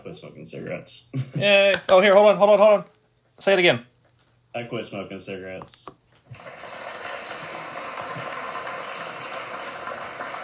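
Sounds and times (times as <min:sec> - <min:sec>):
speech: 0:00.1 - 0:03.9, 0:04.5 - 0:06.6
round of applause sound effect: 0:06.3 - 0:10.4.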